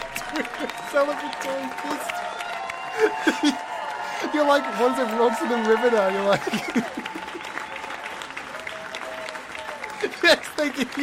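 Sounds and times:
laughter: 0:00.0 - 0:02.1, 0:02.8 - 0:08.0
crowd applauding: 0:00.0 - 0:11.0
faint cheering: 0:00.0 - 0:11.0
speech: 0:00.3 - 0:02.2, 0:03.0 - 0:07.7, 0:10.0 - 0:11.0.

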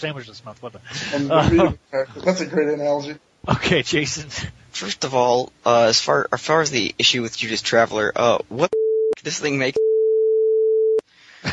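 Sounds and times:
speech: 0:00.0 - 0:09.9
censor bleep: 0:09.8 - 0:11.0.

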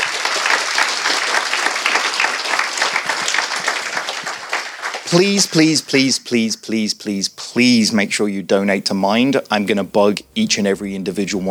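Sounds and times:
audience applause: 0:00.0 - 0:06.1
speech: 0:05.1 - 0:11.4.

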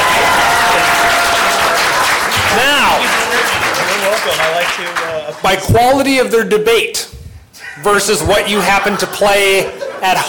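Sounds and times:
crowd applause: 0:00.0 - 0:05.6
speech: 0:04.2 - 0:10.2
laughter: 0:08.2 - 0:10.2.

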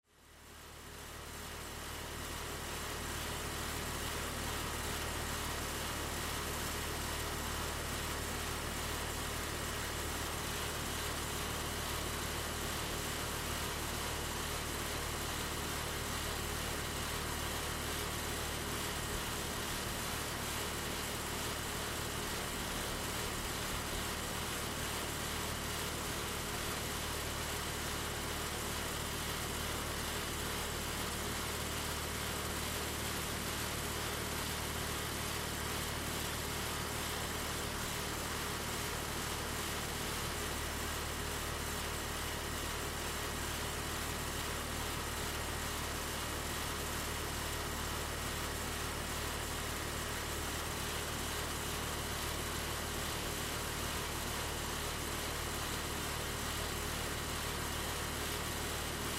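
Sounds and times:
industrial air conditioner: 0:00.6 - 0:59.1.

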